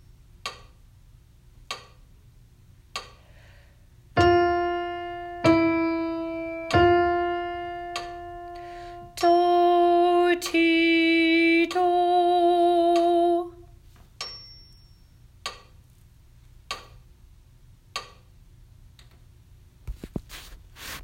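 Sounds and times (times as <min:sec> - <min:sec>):
alto sight reading patterns: 0:04.2 - 0:13.1.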